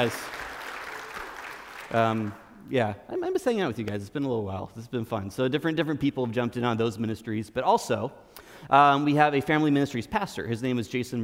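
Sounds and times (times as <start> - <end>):
speech: 0.0 - 0.4, 1.9 - 11.2
audience clapping for high school students at a church service: 0.0 - 2.6.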